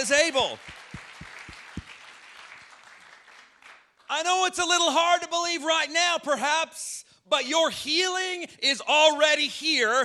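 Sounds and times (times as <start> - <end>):
audience clapping hands: 0.2 - 4.1
speech: 0.3 - 0.8, 4.1 - 10.0.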